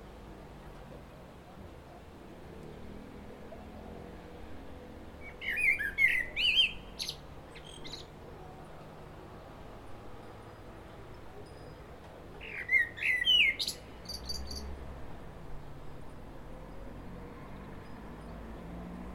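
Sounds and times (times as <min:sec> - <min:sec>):
common blackbird singing fluted phrase: 0:05.4 - 0:08.1, 0:12.4 - 0:14.7.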